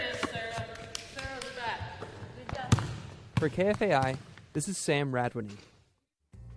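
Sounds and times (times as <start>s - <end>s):
basketball dribbling during practice in the Brian Coyle Center gym: 0.1s - 4.5s
speech: 3.4s - 5.7s.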